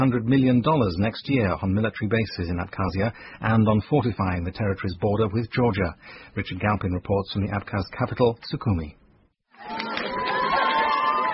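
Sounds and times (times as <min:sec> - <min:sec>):
speech: 0:00.0 - 0:09.0
crowd of relatives cheering and shouting in Abkhazia's capital: 0:09.6 - 0:11.3.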